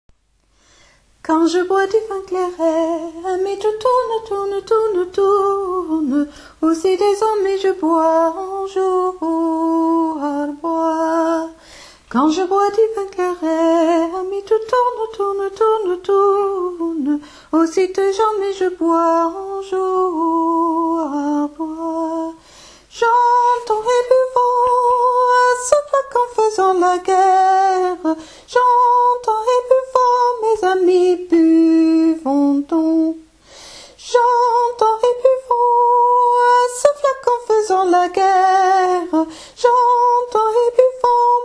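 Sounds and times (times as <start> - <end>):
soprano singing: 1.2 - 33.3, 34.0 - 41.4.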